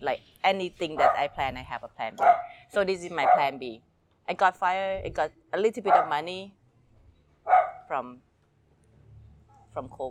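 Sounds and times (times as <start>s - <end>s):
speech: 0.0s - 6.6s, 7.4s - 8.3s, 9.8s - 10.1s
dog barking: 1.0s - 1.3s, 2.2s - 2.6s, 3.2s - 3.6s, 5.9s - 6.2s, 7.5s - 7.9s.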